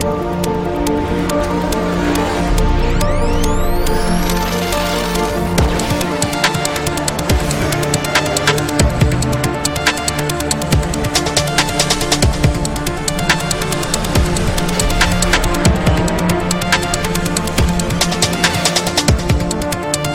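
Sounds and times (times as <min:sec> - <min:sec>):
remix music: 0:00.0 - 0:20.1.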